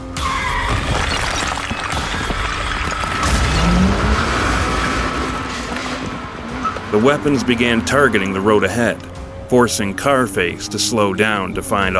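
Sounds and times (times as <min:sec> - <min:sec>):
crashing debris: 0:00.6 - 0:06.1
explosion sound effect: 0:00.7 - 0:06.0
speech: 0:06.9 - 0:11.9.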